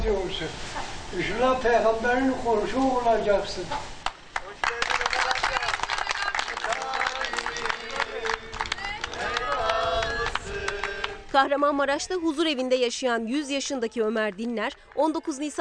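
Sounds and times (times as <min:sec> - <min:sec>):
speech: 0:00.0 - 0:04.0, 0:11.4 - 0:15.5
hospital staff applauding: 0:04.0 - 0:11.2, 0:14.0 - 0:15.5.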